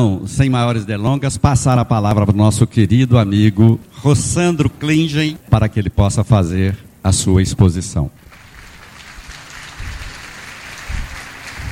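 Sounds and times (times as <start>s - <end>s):
speech: 0.0s - 8.2s
applause: 8.2s - 11.6s.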